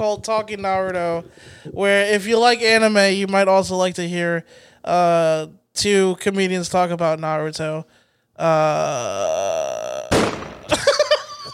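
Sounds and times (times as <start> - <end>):
speech: 0.0 - 10.0
gunshot sound effect: 10.1 - 11.0
laughter: 10.6 - 11.5.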